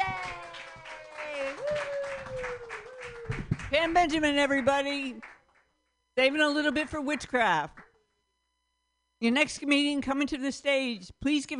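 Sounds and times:
audience clapping at an open-mic comedy night: 0:00.0 - 0:05.7, 0:06.7 - 0:08.0
speech: 0:03.8 - 0:05.3, 0:06.2 - 0:07.8, 0:09.2 - 0:11.5.

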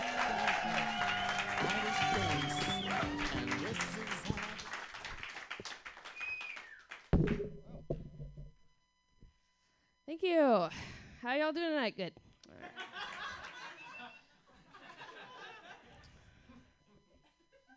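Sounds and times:
audience applause for a comedian at a comedy show: 0:00.0 - 0:07.1
speech: 0:10.2 - 0:12.2
laughter: 0:12.5 - 0:16.7.

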